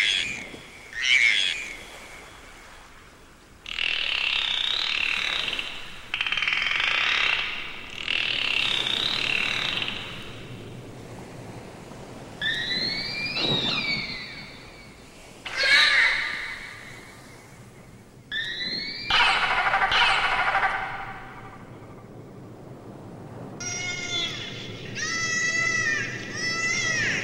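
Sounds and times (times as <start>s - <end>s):
dolphins vocalizing: 0.0s - 2.2s, 3.6s - 10.8s, 12.4s - 17.6s, 18.3s - 22.0s, 23.6s - 27.2s.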